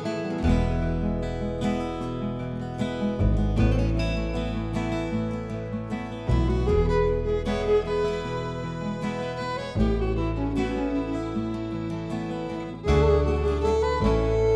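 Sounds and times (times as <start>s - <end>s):
Cajun music: 0.1s - 14.5s.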